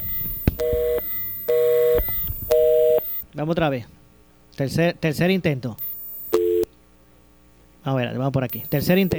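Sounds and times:
telephone busy signal: 0.0s - 3.2s, 6.3s - 6.7s, 8.6s - 9.1s
speech: 3.4s - 4.0s, 4.6s - 5.9s, 7.8s - 9.1s.

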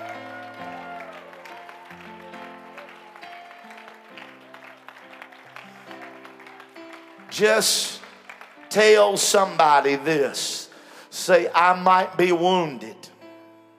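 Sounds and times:
audience clapping and applauding: 0.0s - 10.3s
speech: 7.4s - 8.0s, 8.7s - 10.6s, 11.2s - 13.1s.

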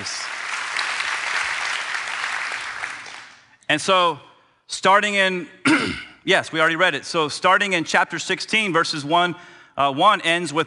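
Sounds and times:
audience clapping: 0.0s - 3.5s
speech: 3.7s - 10.6s.

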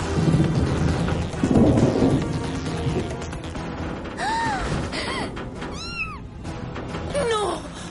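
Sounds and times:
building collapsing in an animated film: 0.0s - 5.0s
cats from an animal hospital meowing: 5.7s - 6.2s.

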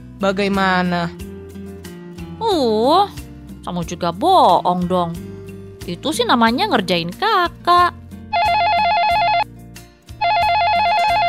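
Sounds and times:
speech: 0.2s - 1.2s, 2.4s - 8.0s
telephone ringing with electronic trills: 8.3s - 9.5s, 10.2s - 11.2s.

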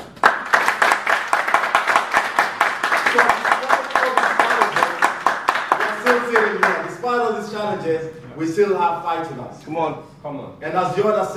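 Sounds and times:
audience clapping: 0.0s - 7.1s
speech: 7.7s - 11.3s.

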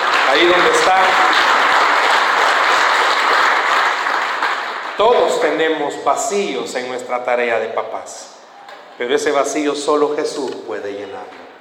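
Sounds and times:
audience applause: 0.0s - 5.8s
speech: 0.3s - 1.6s, 5.0s - 8.4s, 9.0s - 11.4s.

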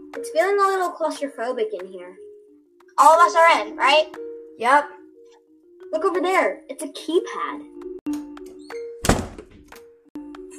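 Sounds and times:
speech: 0.1s - 2.2s, 3.0s - 5.0s, 5.9s - 8.2s
closet door closing by itself: 8.5s - 9.8s.

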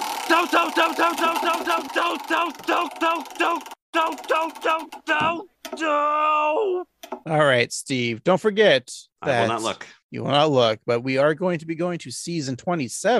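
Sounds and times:
spinning Wheel of Random sound effect: 0.0s - 5.3s
speech: 0.3s - 13.1s.

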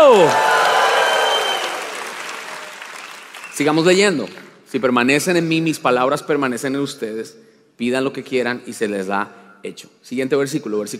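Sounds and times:
people cheering and shouting: 0.0s - 1.9s
audience applauding: 0.0s - 4.2s
speech: 3.6s - 10.9s.

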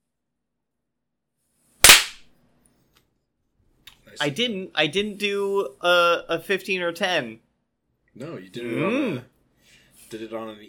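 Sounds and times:
sync hand clap: 1.8s - 2.2s
speech: 4.2s - 7.4s, 8.2s - 9.3s, 10.1s - 10.6s.

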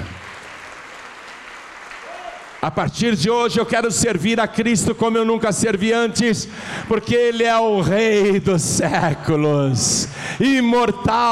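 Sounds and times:
audience applauding: 0.0s - 3.0s
speech: 2.6s - 11.2s.

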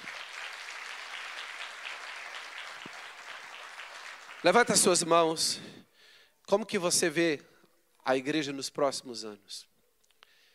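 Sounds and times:
audience applause: 0.0s - 5.1s
speech: 4.4s - 5.8s, 6.5s - 9.7s.

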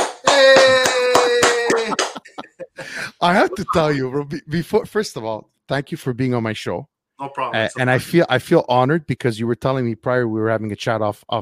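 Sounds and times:
hand clap: 0.0s - 2.5s
laughter: 0.4s - 4.3s
speech: 3.2s - 11.4s.

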